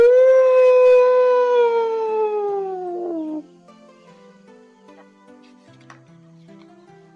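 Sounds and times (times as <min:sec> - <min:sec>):
wolf howl imitation: 0:00.0 - 0:03.5.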